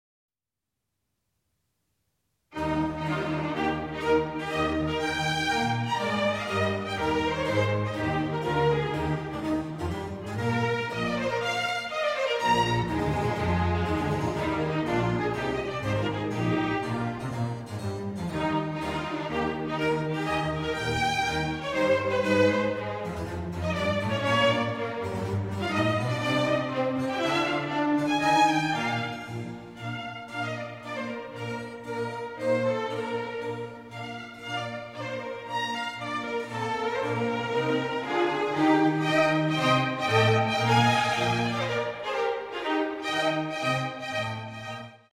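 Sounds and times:
trumpet concerto: 0:02.5 - 0:45.1.

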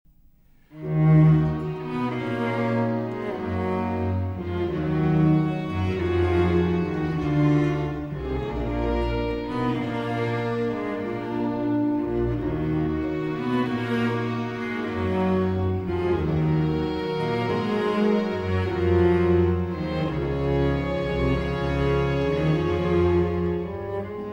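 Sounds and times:
cello concerto slow movement: 0:00.5 - 0:24.3.

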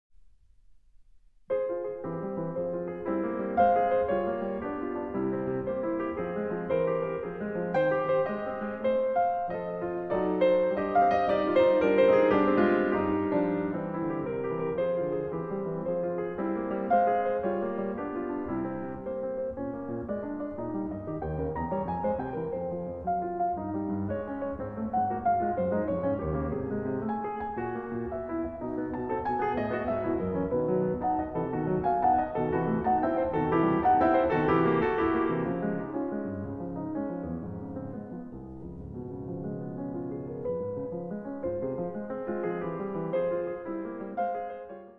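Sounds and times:
piano intermezzo in F minor: 0:00.1 - 0:44.9.

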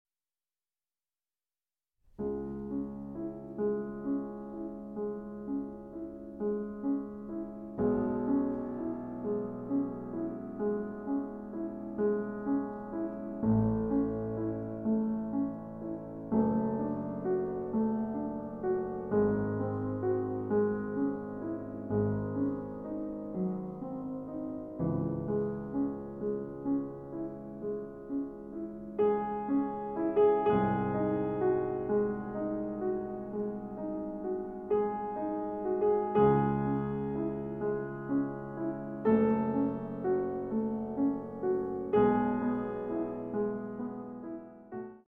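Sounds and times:
slow piano sonata: 0:02.0 - 0:45.0.

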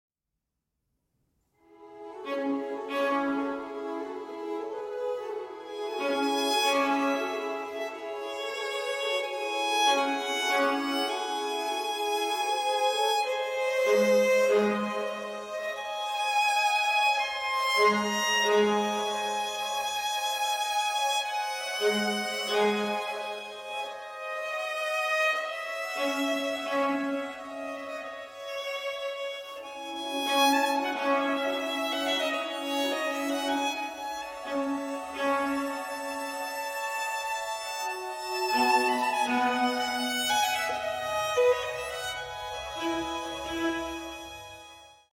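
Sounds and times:
violin concerto largo in E major: 0:01.7 - 0:45.1.

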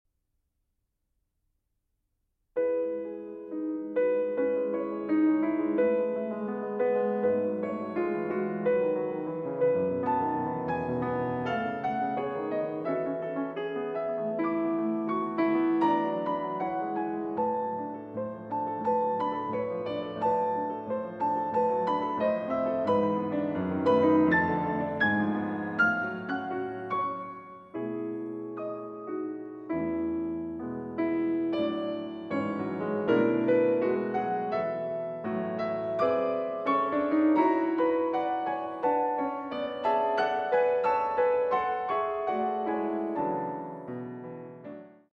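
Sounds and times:
piano capriccio in E major: 0:02.5 - 0:45.1.

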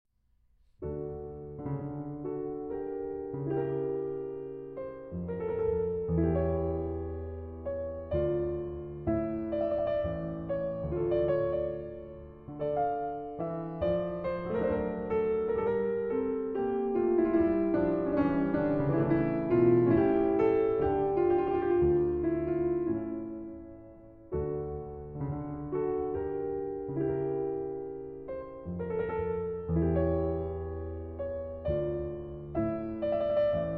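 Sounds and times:
harpsichord sarabande in D minor: 0:01.2 - 0:33.7.

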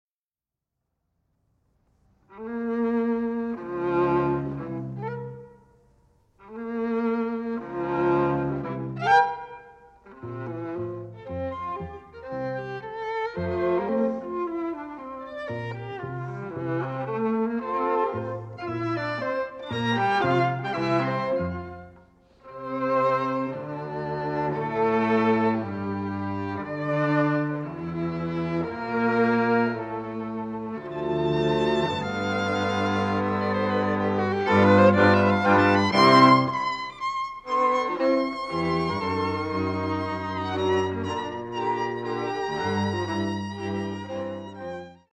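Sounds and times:
string quartet in F major allegretto: 0:02.2 - 0:45.1.

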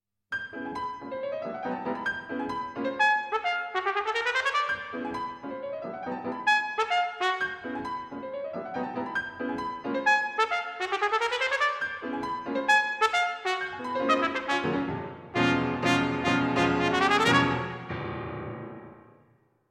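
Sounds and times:
piano: 0:00.3 - 0:19.6
trumpet: 0:02.8 - 0:05.4, 0:06.4 - 0:07.9, 0:09.9 - 0:18.0.

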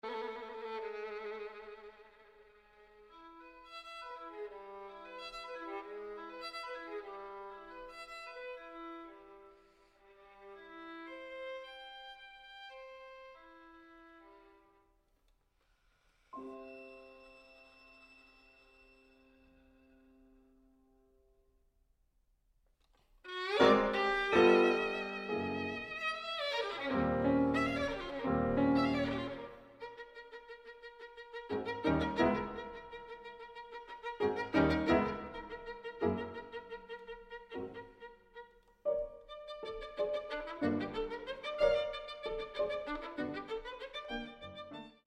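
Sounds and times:
violin sonata in G minor: 0:00.0 - 0:14.9, 0:16.4 - 0:20.1, 0:23.2 - 0:45.0.

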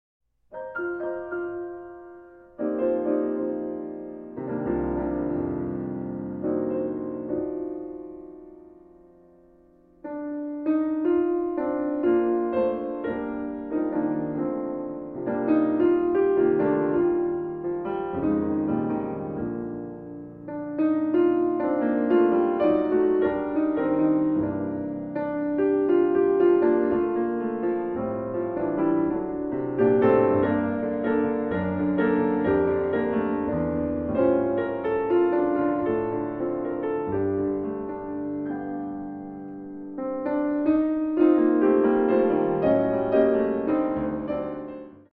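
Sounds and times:
solo piano: 0:00.4 - 0:45.1.

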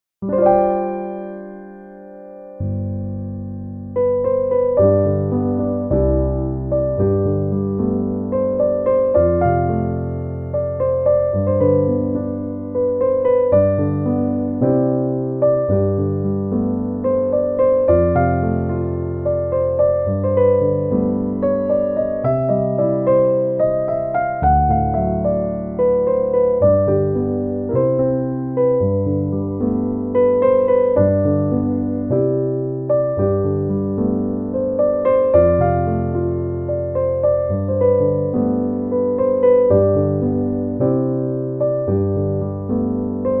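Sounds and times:
piano instrumental: 0:00.2 - 0:43.3.

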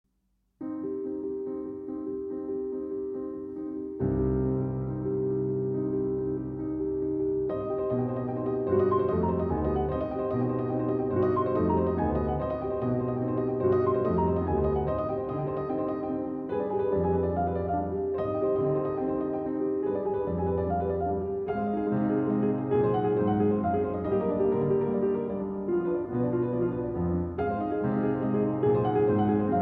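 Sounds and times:
piano duet: 0:00.6 - 0:29.6.

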